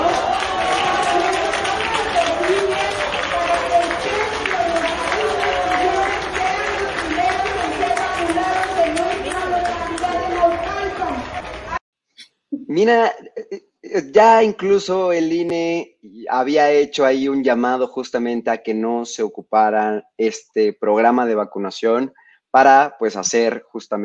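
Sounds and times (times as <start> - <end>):
crowd applauding: 0.0 - 11.8
raised voices cheering: 0.0 - 11.8
speech: 12.8 - 13.2, 14.2 - 24.0.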